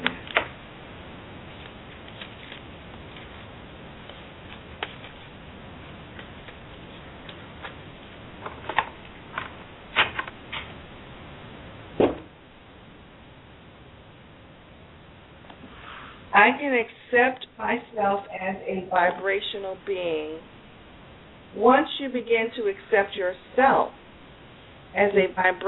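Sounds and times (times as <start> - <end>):
faint hiss: 0.0 - 25.6
tarot cards being shuffled: 1.5 - 10.8
speech: 16.5 - 20.6, 21.5 - 24.0, 24.9 - 25.6.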